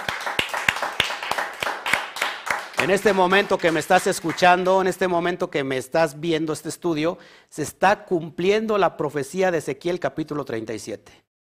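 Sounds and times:
audience applause: 0:00.0 - 0:04.7
speech: 0:02.8 - 0:11.2.

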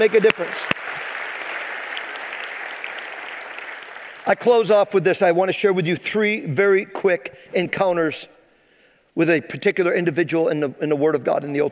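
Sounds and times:
speech: 0:00.0 - 0:00.8, 0:04.3 - 0:08.3, 0:09.2 - 0:11.6
audience round of applause: 0:00.0 - 0:04.5.

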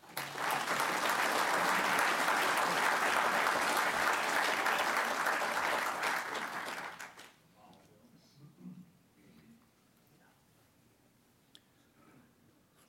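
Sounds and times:
audience applause welcoming an author and historian to a lecture: 0:00.0 - 0:07.4.

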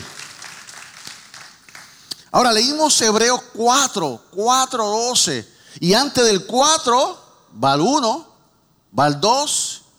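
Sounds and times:
audience applause: 0:00.0 - 0:02.0
speech: 0:02.3 - 0:08.3, 0:08.9 - 0:09.9.

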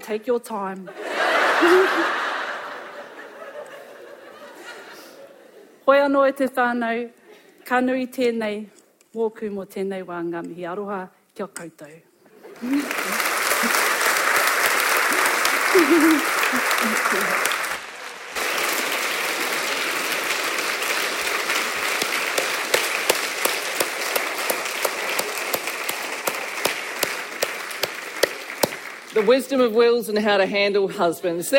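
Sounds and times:
speech: 0:00.1 - 0:02.3, 0:05.9 - 0:13.8, 0:15.8 - 0:17.6, 0:29.2 - 0:31.5
laughter: 0:00.9 - 0:05.8, 0:12.4 - 0:17.8
audience applause: 0:01.2 - 0:03.1, 0:12.5 - 0:29.4.

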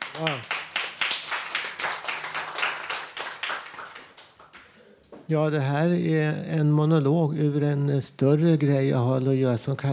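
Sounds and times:
audience applause: 0:00.0 - 0:04.5
speech: 0:05.3 - 0:09.9.

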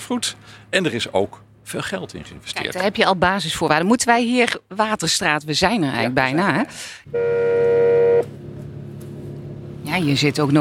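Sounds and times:
speech: 0:00.1 - 0:07.7, 0:09.9 - 0:10.5
doorbell or intercom buzzer ringing: 0:07.1 - 0:08.3.

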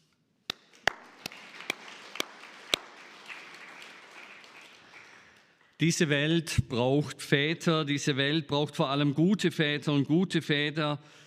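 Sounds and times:
audience applause: 0:00.7 - 0:05.8
speech: 0:05.8 - 0:11.2.

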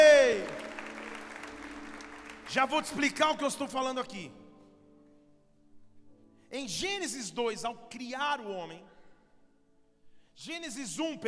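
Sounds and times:
audience applauding: 0:00.0 - 0:03.3
speech: 0:02.5 - 0:04.4, 0:06.5 - 0:08.9, 0:10.4 - 0:11.2.

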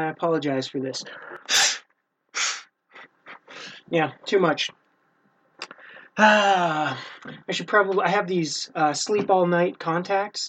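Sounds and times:
speech: 0:00.0 - 0:01.7, 0:03.9 - 0:04.8, 0:06.2 - 0:10.4
nose blowing: 0:01.5 - 0:02.7.

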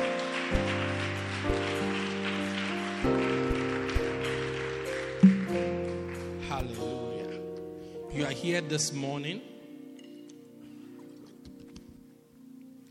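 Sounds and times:
audience clapping hands: 0:00.0 - 0:07.0
speech: 0:08.2 - 0:09.5.

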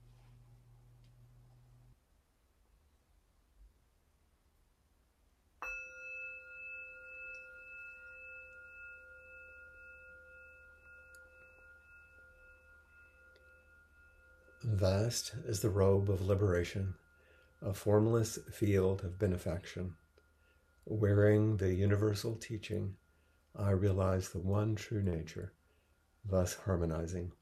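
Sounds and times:
meditation bells rung: 0:05.6 - 0:27.4
speech: 0:14.6 - 0:17.0, 0:17.6 - 0:20.0, 0:20.8 - 0:23.0, 0:23.6 - 0:25.6, 0:26.2 - 0:27.4.

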